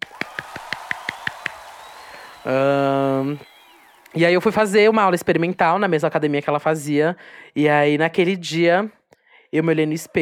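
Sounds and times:
hand claps: 0.0s - 2.6s
speech: 2.4s - 3.5s, 4.1s - 10.1s.

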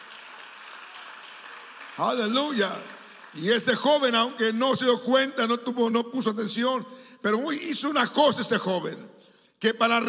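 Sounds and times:
audience applauding: 0.0s - 4.8s
speech: 2.0s - 10.0s.

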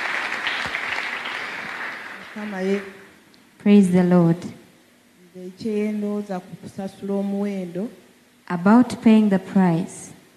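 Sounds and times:
audience hand clapping: 0.0s - 3.0s
speech: 2.4s - 3.0s, 3.6s - 4.6s, 5.4s - 10.0s.

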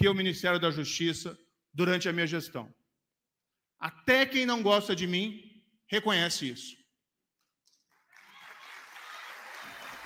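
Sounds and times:
speech: 0.0s - 2.8s, 3.8s - 6.8s
applause during a speech: 7.6s - 10.0s.

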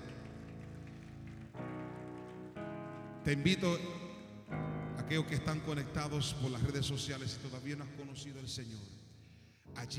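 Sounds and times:
audience applauding: 0.0s - 3.7s
speech: 3.2s - 4.1s, 5.1s - 9.1s, 9.7s - 9.9s.

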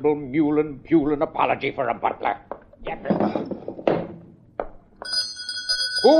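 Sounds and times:
speech: 0.0s - 3.7s
old-fashioned pull door bell ringing: 5.0s - 6.1s.

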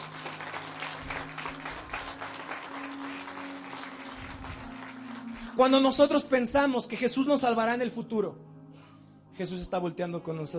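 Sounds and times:
audience applause: 0.0s - 6.0s
speech: 5.6s - 8.5s, 9.4s - 10.5s.

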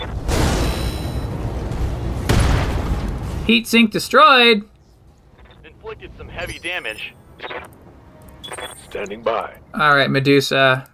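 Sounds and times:
giant mech kicking a downed enemy mech in a video game: 0.1s - 3.5s
speech: 3.5s - 4.7s, 5.9s - 7.7s, 8.6s - 10.9s.

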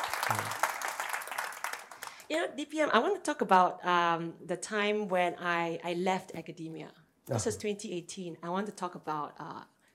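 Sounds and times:
hands clapping: 0.0s - 2.3s
speech: 2.3s - 9.7s.

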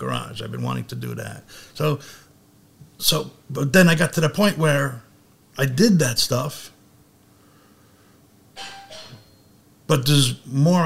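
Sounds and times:
speech: 0.0s - 2.3s, 3.0s - 6.7s, 9.9s - 10.8s
doorbell ringing: 8.6s - 9.5s.

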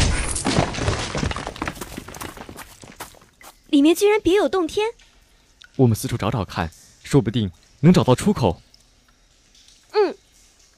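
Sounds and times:
crumbling rock debris and rubble: 0.0s - 3.3s
stone wall being smashed open: 0.0s - 3.3s
speech: 3.7s - 5.1s, 5.8s - 8.6s.

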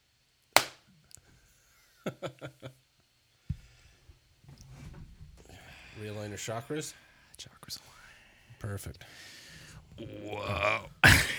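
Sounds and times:
single hand clap for audio sync: 0.6s - 0.9s
laughter: 1.9s - 2.8s, 9.6s - 11.3s
speech: 2.0s - 2.7s, 6.0s - 8.0s, 8.6s - 9.3s, 10.0s - 11.0s.

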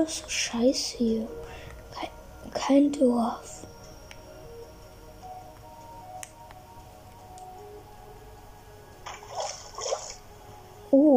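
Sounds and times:
speech: 0.0s - 3.7s
low steady hum: 0.0s - 11.1s
water dripping in an underground cave: 9.0s - 10.4s.

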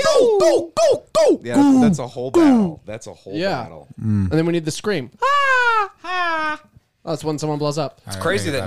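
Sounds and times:
voice imitating a TIE fighter: 0.1s - 2.8s
speech: 1.5s - 8.6s.

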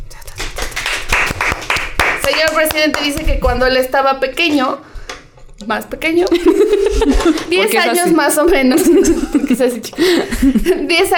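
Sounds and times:
small group clapping: 0.0s - 3.7s
speech: 2.4s - 4.9s, 5.6s - 11.1s
laughter: 6.3s - 11.1s.

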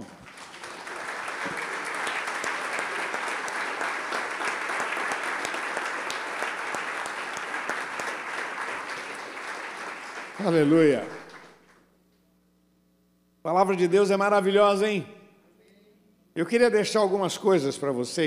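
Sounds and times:
audience applause: 0.0s - 11.8s
speech: 10.4s - 11.2s, 13.6s - 15.2s, 16.4s - 18.2s.

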